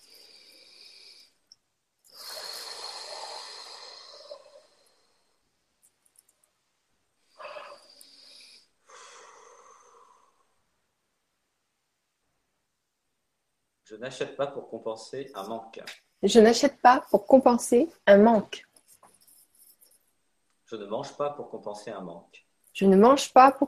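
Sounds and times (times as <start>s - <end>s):
slow breathing during a guided French affirmation session: 0.0s - 1.5s, 2.1s - 5.5s, 7.2s - 10.6s
speech: 13.9s - 18.7s, 20.7s - 23.6s.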